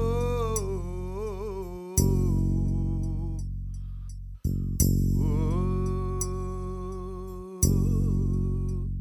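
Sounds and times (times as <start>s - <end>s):
a cappella singing: 0.0s - 3.4s, 5.2s - 8.9s.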